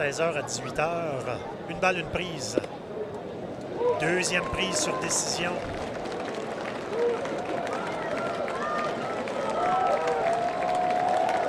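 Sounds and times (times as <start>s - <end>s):
speech: 0.0s - 2.8s, 4.0s - 5.8s
baseball stadium crowd cheering: 3.7s - 11.4s.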